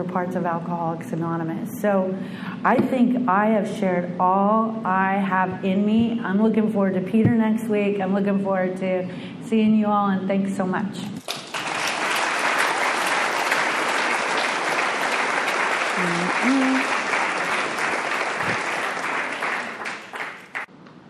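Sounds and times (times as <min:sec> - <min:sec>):
speech: 0:00.0 - 0:11.2, 0:16.0 - 0:17.0
audience applause: 0:11.2 - 0:20.7.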